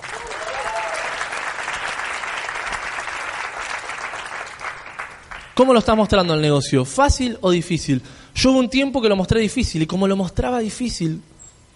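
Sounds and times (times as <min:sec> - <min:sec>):
faint cheers: 0:00.0 - 0:01.4
audience applause: 0:00.0 - 0:05.6
speech: 0:05.6 - 0:11.3.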